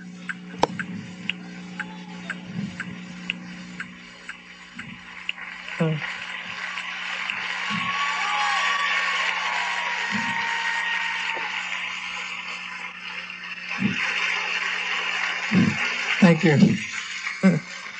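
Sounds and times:
scattered whoops: 1.5 - 2.4, 6.6 - 12.1
audience applause and cheering: 5.0 - 17.9
speech: 5.8 - 6.2, 16.3 - 17.7.

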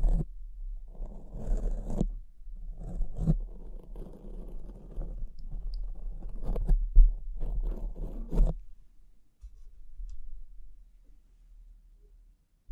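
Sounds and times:
low steady hum: 0.0 - 12.7
scratching and brushing: 0.9 - 2.2, 2.8 - 8.7.

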